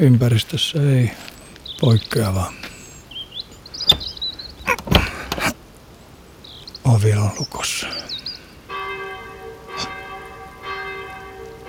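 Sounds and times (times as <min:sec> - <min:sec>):
speech: 0:00.0 - 0:02.7, 0:06.8 - 0:08.1
steady hiss possibly rain: 0:00.0 - 0:11.6
church bells ringing: 0:08.7 - 0:11.6.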